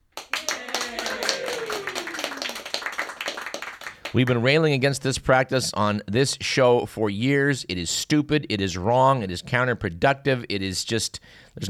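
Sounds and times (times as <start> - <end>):
round of applause: 0.2 - 4.4
speech: 4.1 - 11.6.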